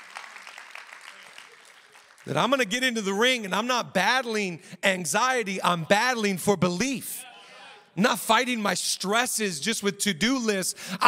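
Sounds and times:
crowd audience clapping together: 0.0 - 2.7
speech: 2.2 - 7.3, 8.0 - 11.0.

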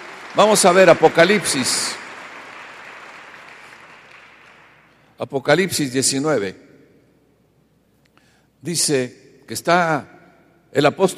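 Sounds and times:
audience applause: 0.0 - 4.9
speech: 0.4 - 2.0, 5.2 - 6.7, 8.6 - 11.1.

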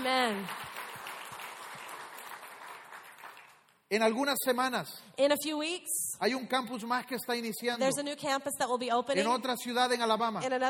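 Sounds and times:
speech: 0.0 - 0.8, 3.9 - 10.6
audience applause for God: 0.0 - 3.6.

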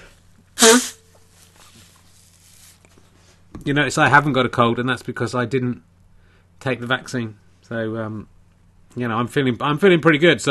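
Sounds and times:
person blowing nose: 0.0 - 1.2
faint hum: 0.0 - 10.5
speech: 3.7 - 5.9, 6.6 - 8.3, 9.0 - 10.5.

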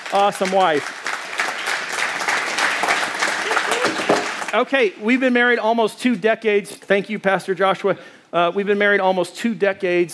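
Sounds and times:
audience applause: 0.0 - 4.6
speech: 0.1 - 1.0, 4.5 - 10.1.

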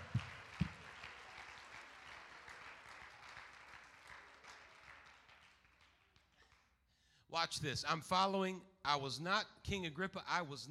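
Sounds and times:
audience clapping hands: 0.0 - 6.8
speech: 7.4 - 10.6.

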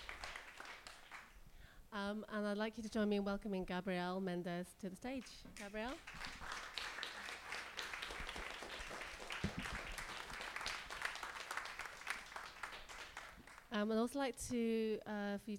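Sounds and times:
audience applause at a literary festival reading: 0.0 - 1.3, 6.0 - 13.7
speech: 1.9 - 6.3, 13.8 - 15.5.

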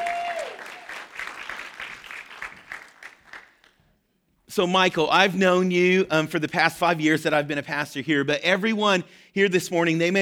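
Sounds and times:
audience clapping to welcome a speaker onto the church stage: 0.0 - 4.0
speech: 4.6 - 10.2.

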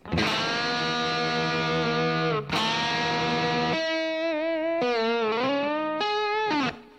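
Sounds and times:
heavily distorted electric guitar solo: 0.0 - 6.9.

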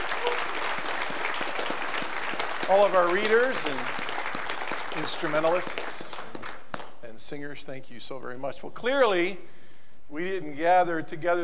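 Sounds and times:
audience applause for readers, instrumentalists and singers: 0.0 - 6.9
speech: 2.7 - 4.0, 5.0 - 6.0, 7.2 - 11.4.

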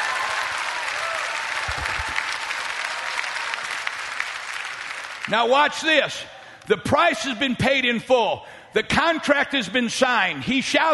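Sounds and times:
audience clapping: 0.0 - 5.5
speech: 5.3 - 10.9.

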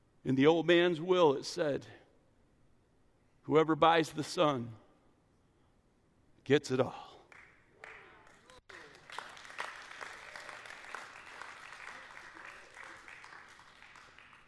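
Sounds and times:
speech: 0.2 - 2.0, 3.5 - 4.8, 6.4 - 7.1
audience clapping: 7.3 - 14.4.

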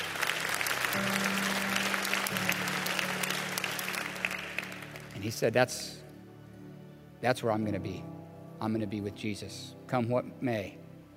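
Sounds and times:
audience applause: 0.0 - 5.2
speech: 5.2 - 6.0, 7.2 - 10.8.

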